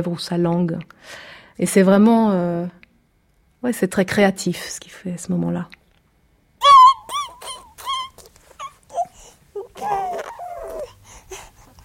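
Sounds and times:
speech: 0:00.0 - 0:02.8, 0:03.6 - 0:05.8
baby crying out to call: 0:06.6 - 0:11.0.

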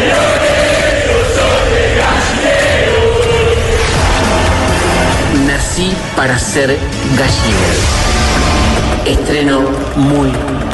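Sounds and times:
football fans chanting in a stadium: 0:00.0 - 0:05.4
speech: 0:06.2 - 0:10.6.

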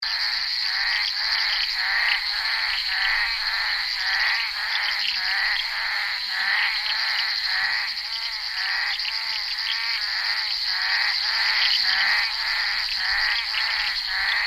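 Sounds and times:
bullfrog chorus croaking: 0:00.0 - 0:14.4.

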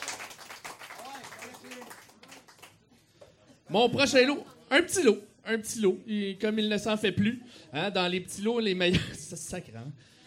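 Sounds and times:
audience applause after an auction sale: 0:00.0 - 0:02.8
speech: 0:03.7 - 0:10.2.

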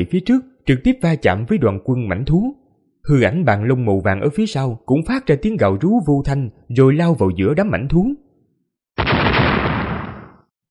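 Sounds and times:
speech: 0:00.0 - 0:08.2
powerful explosion sound effect: 0:09.0 - 0:10.4.

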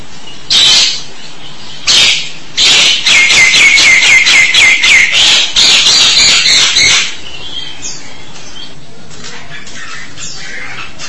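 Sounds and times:
starling chattering: 0:01.8 - 0:07.2, 0:07.9 - 0:11.0.

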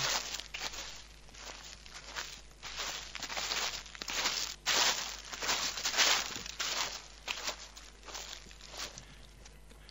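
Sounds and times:
rustling leaves in the background: 0:00.0 - 0:09.4.

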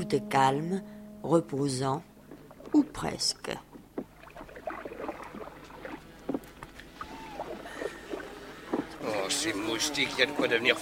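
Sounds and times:
speech: 0:00.1 - 0:02.1, 0:02.7 - 0:03.7, 0:09.4 - 0:10.7
rowboat gliding quietly across a lake: 0:02.2 - 0:10.7.

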